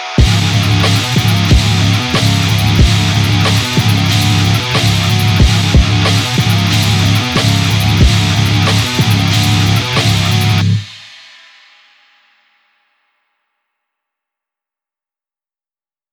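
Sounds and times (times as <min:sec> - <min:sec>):
musical riff: 0:00.2 - 0:10.8.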